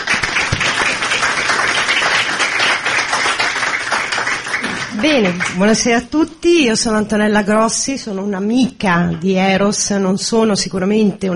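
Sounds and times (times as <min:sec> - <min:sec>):
audience applause: 0:00.0 - 0:05.8
speech: 0:05.0 - 0:11.3.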